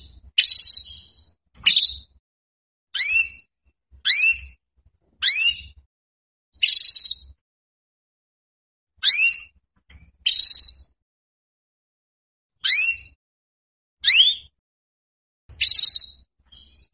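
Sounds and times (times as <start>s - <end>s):
female Belgian canary calling for mating: 0.0s - 2.2s, 3.0s - 4.6s, 5.2s - 5.8s, 6.6s - 7.4s, 9.0s - 9.6s, 10.2s - 11.0s, 12.6s - 13.2s, 14.0s - 14.6s, 15.5s - 16.9s.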